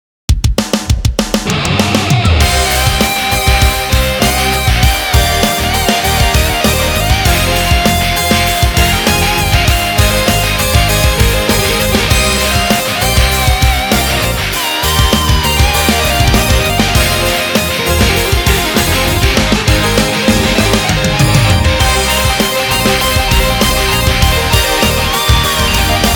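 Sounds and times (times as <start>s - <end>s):
rock music mix: 0.8s - 26.1s.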